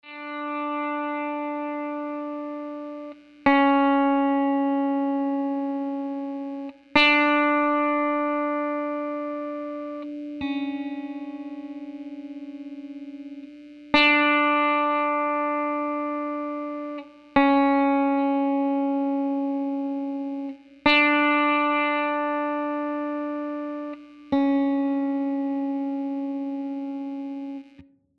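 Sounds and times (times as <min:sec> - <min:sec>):
guitar intro: 0:00.0 - 0:27.9.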